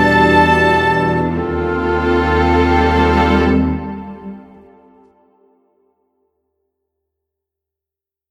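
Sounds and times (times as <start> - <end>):
orchestral flutes: 0.0 - 5.8.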